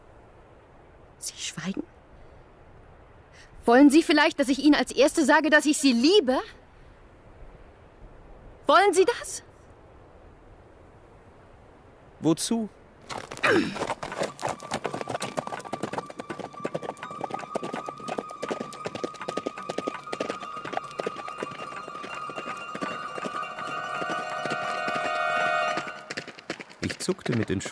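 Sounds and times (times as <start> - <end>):
speech: 1.2 - 2.0, 3.7 - 6.6, 8.7 - 9.5, 12.2 - 14.0, 27.1 - 27.6
horse spurred by its rider galloping along a narrow road: 13.0 - 27.6.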